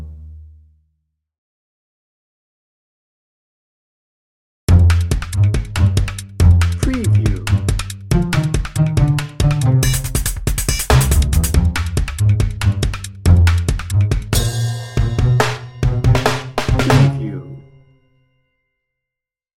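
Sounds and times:
drum and bass music with plucked sounds: 4.7 - 17.5.

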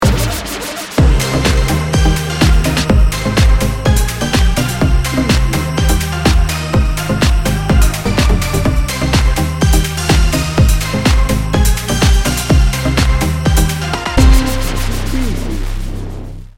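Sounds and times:
edm dance party music: 0.0 - 15.7.

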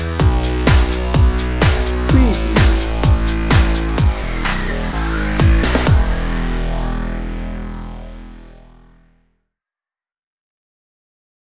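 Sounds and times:
joyful EDM drum and bass music: 0.0 - 8.0.

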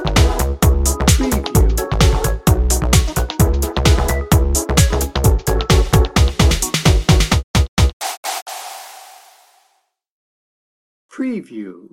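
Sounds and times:
happy techno music bed: 0.0 - 9.5.

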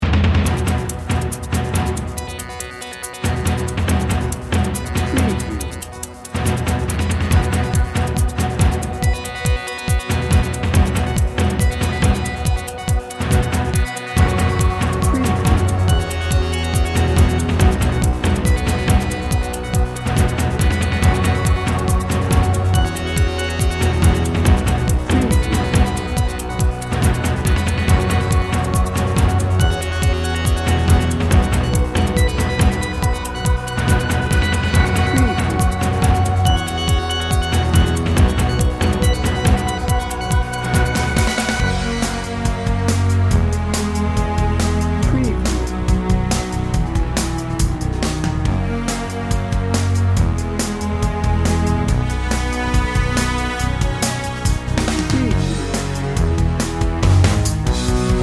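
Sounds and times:
victory music: 0.0 - 58.2.

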